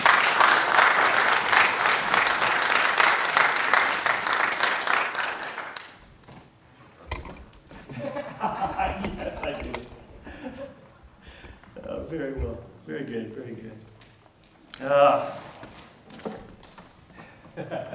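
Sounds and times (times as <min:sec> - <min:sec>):
applause for new church members: 0:00.0 - 0:06.0
laughter: 0:07.8 - 0:11.0, 0:17.3 - 0:17.9.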